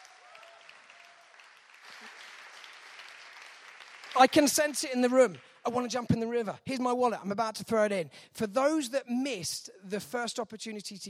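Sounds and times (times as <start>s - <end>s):
audience applause: 0.0s - 5.6s
speech: 4.2s - 11.0s.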